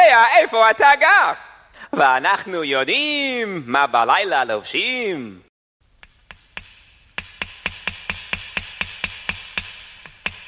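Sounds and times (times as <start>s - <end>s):
speech: 0.2s - 5.5s
hammering nails: 6.0s - 10.4s.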